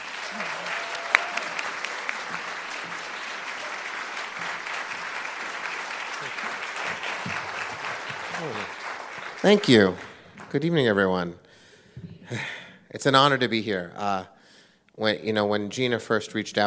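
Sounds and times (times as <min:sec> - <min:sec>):
audience applause welcoming a speaker to the stage: 0:00.0 - 0:11.0
speech: 0:09.4 - 0:11.4, 0:12.3 - 0:14.3, 0:15.0 - 0:16.6.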